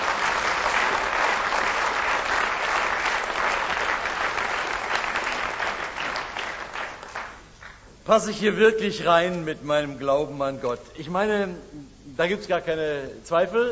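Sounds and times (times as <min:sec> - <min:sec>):
audience applause: 0:00.0 - 0:07.9
speech: 0:08.1 - 0:13.7.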